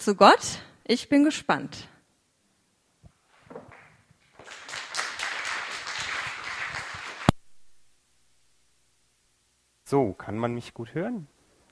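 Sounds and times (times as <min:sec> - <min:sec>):
speech: 0:00.0 - 0:01.9, 0:09.9 - 0:11.3
audience clapping: 0:03.6 - 0:07.4.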